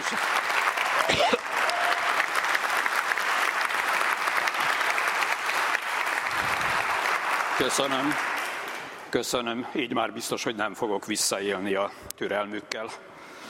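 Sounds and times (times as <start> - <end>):
applause in parliament chamber: 0.0 - 9.1
speech: 1.1 - 1.5, 7.6 - 8.3, 9.1 - 13.1.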